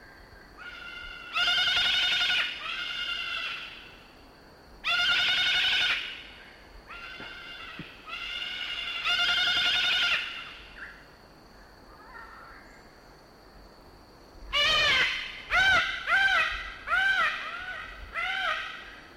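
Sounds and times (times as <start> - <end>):
Cacatua moluccensis calling: 0.6 - 3.8, 4.8 - 6.3, 6.9 - 10.6, 14.5 - 18.9.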